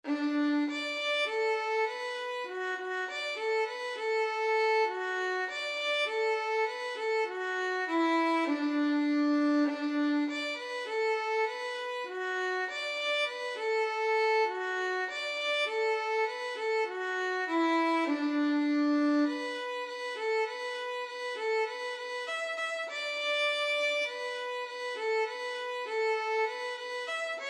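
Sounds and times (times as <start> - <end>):
violin: 0.0 - 27.4.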